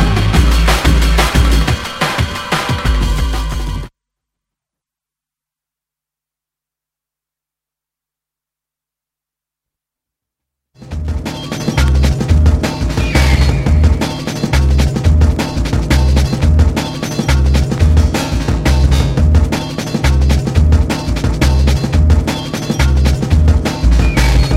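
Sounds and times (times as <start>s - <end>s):
drum and bass music: 0.0s - 3.9s, 10.8s - 24.5s.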